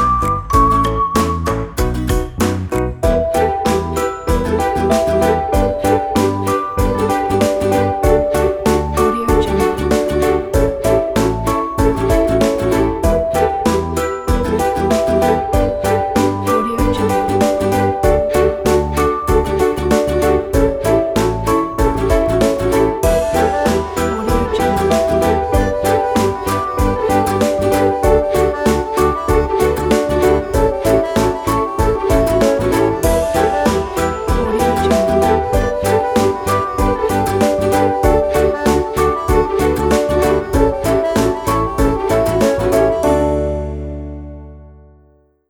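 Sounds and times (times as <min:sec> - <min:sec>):
happy music: 0:00.0 - 0:45.4.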